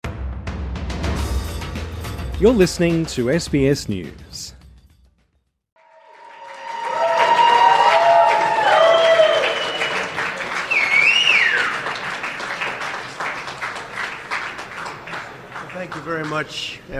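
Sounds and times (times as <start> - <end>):
speech: 2.4 - 4.6, 16.4 - 16.9
supporters applauding Donald Trump's arrival at Trump Tower in Manhattan: 5.8 - 16.7.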